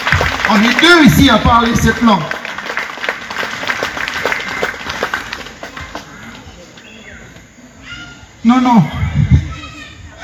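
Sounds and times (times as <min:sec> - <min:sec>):
crowd applauding: 0:00.0 - 0:07.5
speech: 0:00.5 - 0:02.4, 0:08.4 - 0:09.0.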